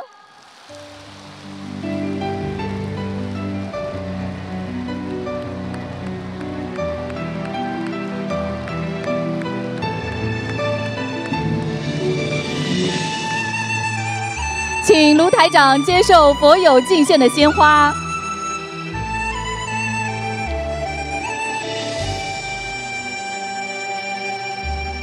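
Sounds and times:
warm applause from audience: 0:00.0 - 0:14.8
speech: 0:14.9 - 0:18.0.

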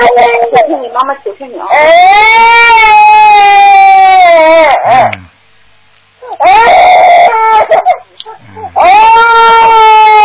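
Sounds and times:
baby crying: 0:00.0 - 0:00.7, 0:01.7 - 0:05.1, 0:06.2 - 0:10.2
speech: 0:00.5 - 0:02.9.

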